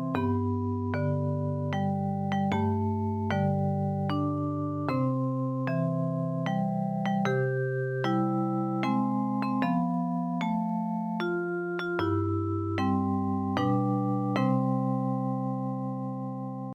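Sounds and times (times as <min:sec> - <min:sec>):
easy version of a song: 0:00.1 - 0:16.7.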